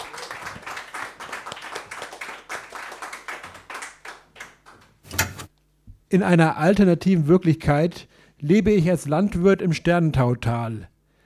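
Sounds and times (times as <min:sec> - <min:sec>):
audience applause: 0:00.0 - 0:04.2
speech: 0:06.1 - 0:10.9.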